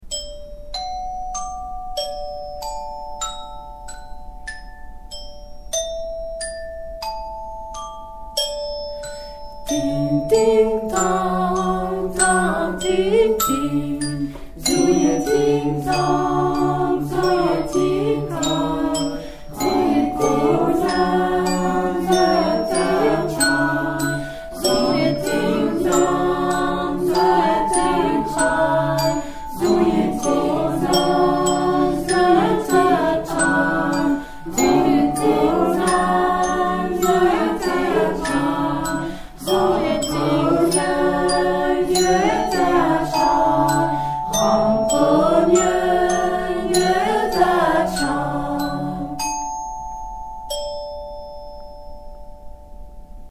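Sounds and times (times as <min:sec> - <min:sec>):
chanting: 0:09.7 - 0:49.3
choral canon: 0:09.7 - 0:49.4.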